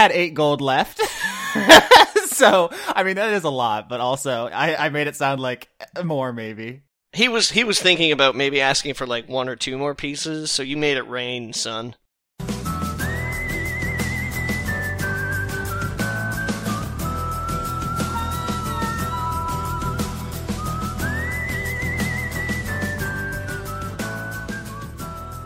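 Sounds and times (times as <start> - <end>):
speech: 0.0 - 12.0
laughter: 1.1 - 2.7
driving rhythm section: 12.4 - 25.4
high whistled melody in a Western-style video game theme remix: 12.6 - 25.4.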